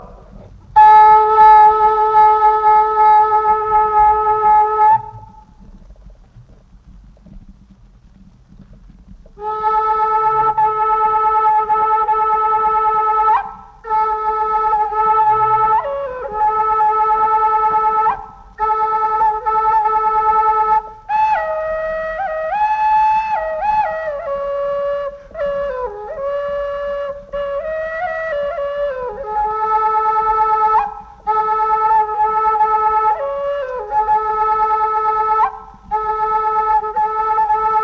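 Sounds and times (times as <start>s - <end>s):
Kiowa native flute: 0.0s - 37.8s.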